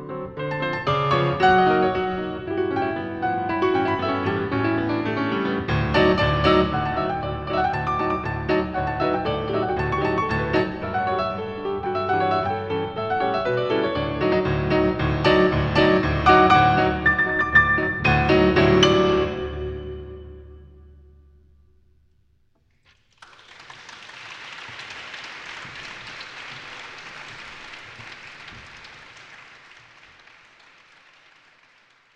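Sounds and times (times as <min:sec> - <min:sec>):
polka music: 0:00.8 - 0:20.0.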